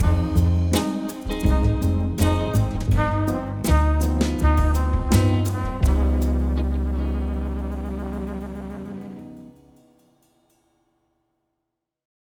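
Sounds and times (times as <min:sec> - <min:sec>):
funky elevator music: 0:00.0 - 0:09.8.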